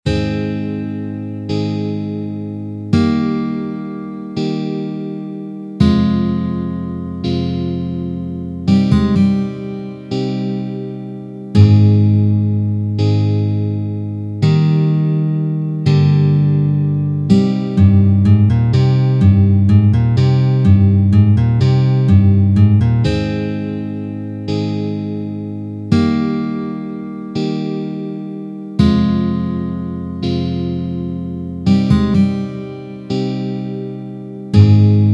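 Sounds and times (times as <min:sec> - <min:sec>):
slow tempo guitar verse outro: 0:00.1 - 0:35.1.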